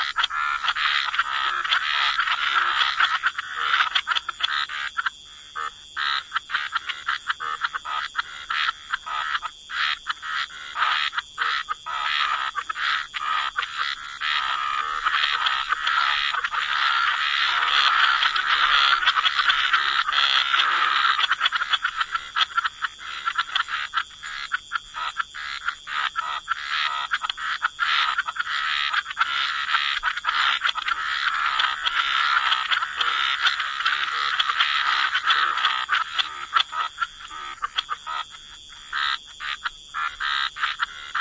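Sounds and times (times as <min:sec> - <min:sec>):
frog chorus calling: 0:00.0 - 0:41.1.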